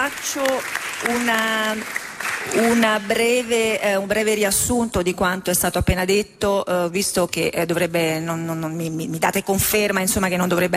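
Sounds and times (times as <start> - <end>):
audience applause at a panel on artificial intelligence and ethics: 0.0 - 3.6
speech: 0.1 - 10.7.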